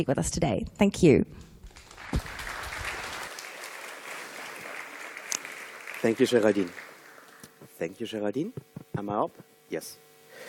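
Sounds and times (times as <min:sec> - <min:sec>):
speech: 0:00.0 - 0:01.5, 0:06.0 - 0:06.8, 0:07.8 - 0:10.4
audience applause: 0:01.7 - 0:07.7.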